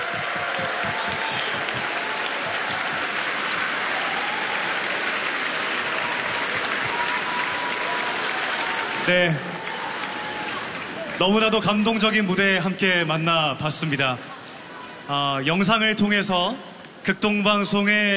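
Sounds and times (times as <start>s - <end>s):
standing ovation applause: 0.0s - 12.5s
speech: 9.0s - 9.5s, 11.2s - 14.3s, 15.1s - 18.1s.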